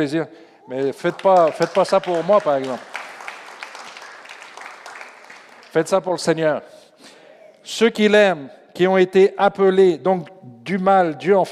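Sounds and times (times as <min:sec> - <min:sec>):
speech: 0:00.0 - 0:02.9, 0:05.7 - 0:06.8, 0:07.6 - 0:11.5
audience applauding: 0:00.6 - 0:06.2.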